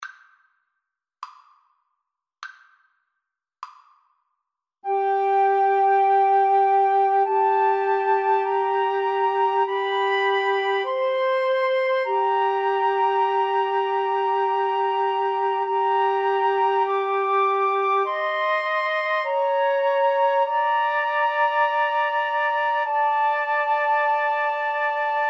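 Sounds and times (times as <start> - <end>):
flute trio playing: 4.9 - 25.2.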